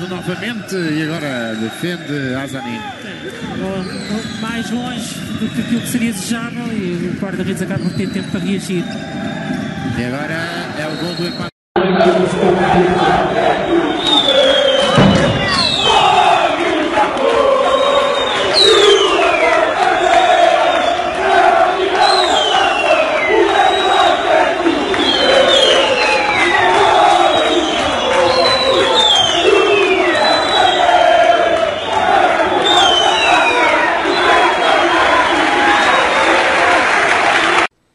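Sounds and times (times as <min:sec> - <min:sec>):
shrill whistles: 0:00.0 - 0:06.7, 0:07.7 - 0:10.1, 0:10.7 - 0:11.5, 0:13.4 - 0:36.7
speech: 0:00.0 - 0:11.5, 0:12.1 - 0:13.8
football supporters chanting in stadium: 0:11.8 - 0:37.7.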